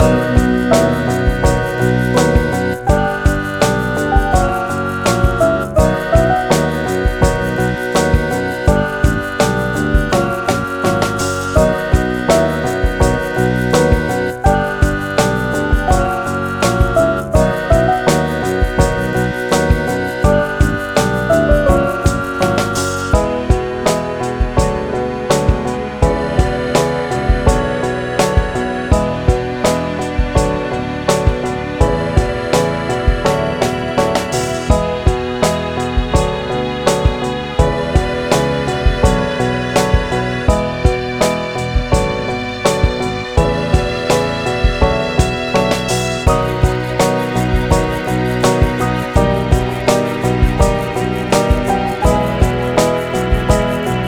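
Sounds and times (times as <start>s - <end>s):
factory noise loop: 0.0s - 54.0s.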